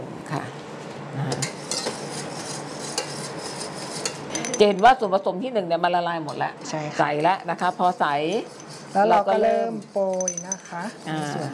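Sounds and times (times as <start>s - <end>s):
metal whisk handled in a kitchen clinking against utensils: 1.5s - 4.9s, 9.8s - 11.0s
speech: 4.6s - 11.5s.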